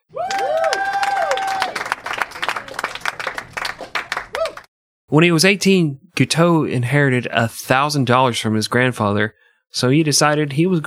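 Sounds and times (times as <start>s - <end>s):
applause: 0.1s - 4.7s
speech: 5.1s - 10.8s.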